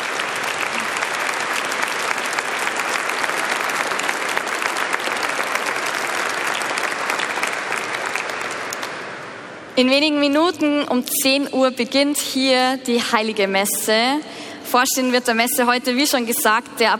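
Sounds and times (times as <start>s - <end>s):
applause: 0.0s - 9.6s
speech: 9.8s - 16.9s.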